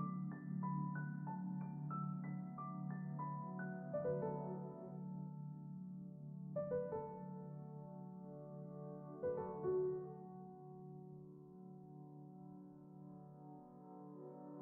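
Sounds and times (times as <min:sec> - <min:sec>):
piano loop: 0:00.0 - 0:10.7.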